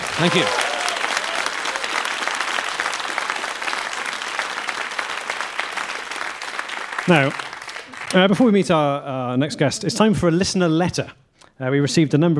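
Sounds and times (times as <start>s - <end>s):
audience applause: 0.0s - 8.6s
speech: 0.2s - 0.6s, 7.1s - 7.5s, 8.1s - 12.3s.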